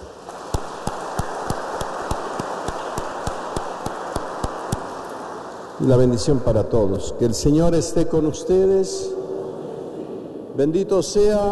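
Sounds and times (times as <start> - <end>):
applause for the quinceañera: 0.0 - 6.4
speech: 5.8 - 9.2, 10.6 - 11.5.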